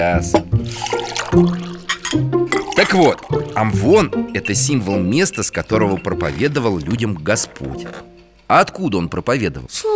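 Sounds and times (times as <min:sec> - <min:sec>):
speech: 0:00.0 - 0:01.5, 0:02.9 - 0:09.9
tea being poured into cups: 0:00.6 - 0:04.1, 0:05.8 - 0:07.8.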